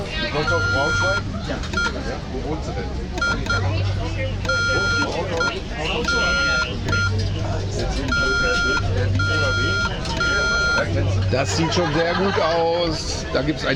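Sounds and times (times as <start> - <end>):
speech: 0.3 - 13.7
Morse code keyed by hand: 0.4 - 2.0, 3.2 - 11.0
laughter: 8.4 - 13.6.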